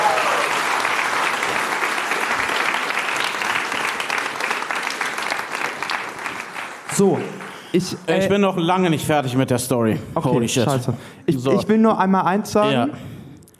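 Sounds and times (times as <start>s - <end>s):
large audience applause: 0.0s - 8.4s
speech: 7.0s - 13.1s.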